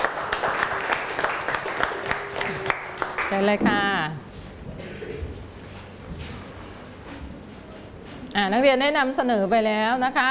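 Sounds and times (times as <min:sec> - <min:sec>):
students applauding in a classroom: 0:00.0 - 0:03.5
speech: 0:03.3 - 0:04.2, 0:08.4 - 0:10.3.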